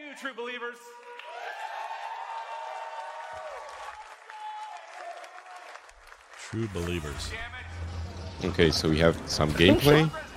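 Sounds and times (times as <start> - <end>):
speech: 0.2 - 1.1, 6.5 - 10.3
large crowd cheering and applauding: 0.9 - 7.4.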